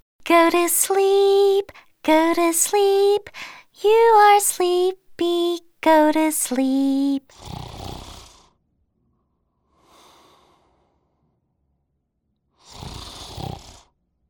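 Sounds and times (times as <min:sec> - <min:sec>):
speech: 0:00.3 - 0:07.6
giant snoring: 0:07.3 - 0:08.6, 0:12.6 - 0:13.9.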